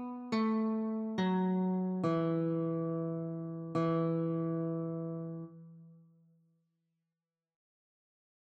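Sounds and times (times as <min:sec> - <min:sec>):
guitar notes: 0:00.0 - 0:06.0.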